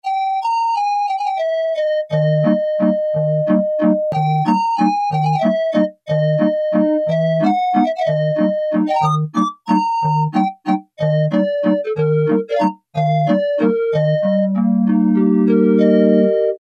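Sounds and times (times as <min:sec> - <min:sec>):
calliope: 0:00.0 - 0:16.5.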